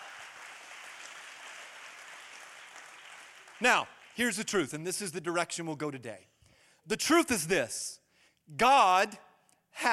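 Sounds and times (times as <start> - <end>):
audience applauding: 0.0 - 4.2
speech: 3.6 - 6.3, 6.9 - 9.2, 9.8 - 9.9.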